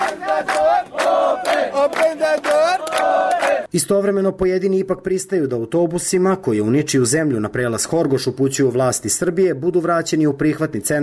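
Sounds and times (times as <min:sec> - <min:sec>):
crowd of refugees chanting at border gate: 0:00.0 - 0:03.7
speech: 0:01.8 - 0:11.0.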